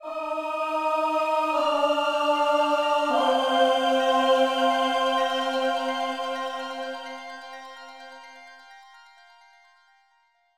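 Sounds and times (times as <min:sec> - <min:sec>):
background music: 0:00.0 - 0:08.4.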